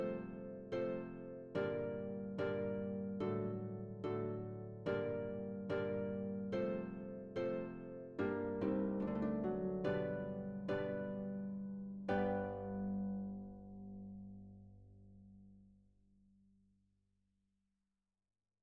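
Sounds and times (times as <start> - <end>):
recercada accompaniment music: 0.0 - 13.8.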